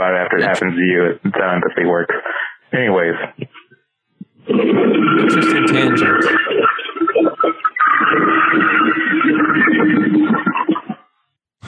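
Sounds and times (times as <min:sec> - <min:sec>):
speech: 0:00.0 - 0:03.6, 0:04.5 - 0:06.7
long toilet flush: 0:04.5 - 0:10.9
brief sharp noise: 0:05.2 - 0:06.4.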